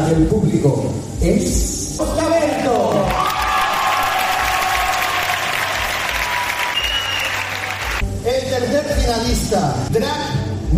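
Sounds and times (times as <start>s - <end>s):
speech: 0.1s - 2.8s, 9.1s - 10.7s
audience applause: 2.7s - 8.0s.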